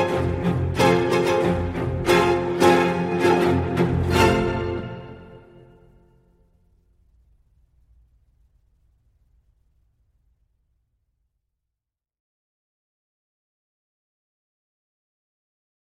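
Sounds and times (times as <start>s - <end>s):
string orchestra playing a lively sword dance allegro con brio: 0.0s - 5.7s.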